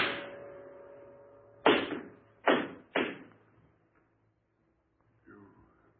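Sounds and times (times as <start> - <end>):
gunshots in an old radio drama: 1.6 - 3.3.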